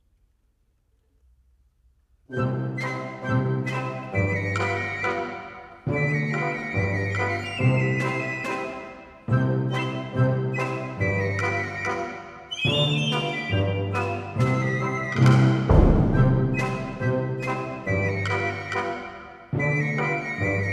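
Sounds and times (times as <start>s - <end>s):
polka music: 2.3s - 20.7s.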